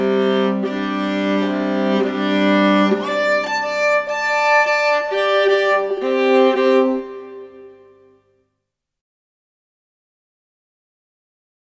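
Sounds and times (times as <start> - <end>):
viola: 0.0 - 8.2.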